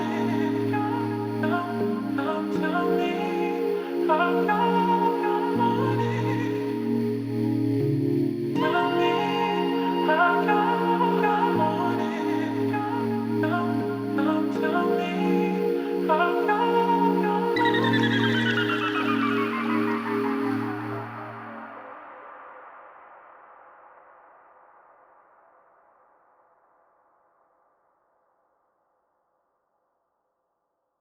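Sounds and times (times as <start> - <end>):
dreamy noise instrumental music: 0.0 - 21.8.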